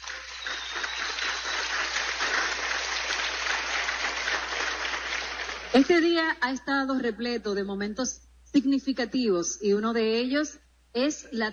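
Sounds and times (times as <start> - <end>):
crowd applauding: 0.0 - 5.9
speech: 5.7 - 11.5.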